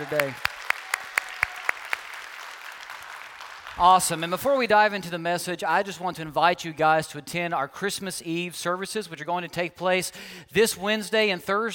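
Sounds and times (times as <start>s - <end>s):
speech: 0.0s - 0.5s, 3.8s - 11.7s
hand claps at a church service welcome: 0.0s - 4.3s.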